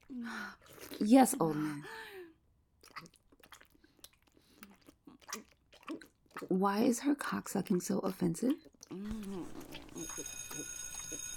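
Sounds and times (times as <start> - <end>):
speech: 0.1 - 2.1, 6.4 - 11.2
school bell ringing: 9.9 - 11.3.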